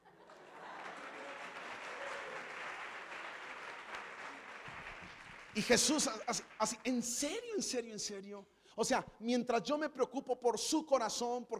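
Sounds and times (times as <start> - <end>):
audience applause: 0.0 - 7.0
speech: 5.6 - 11.5.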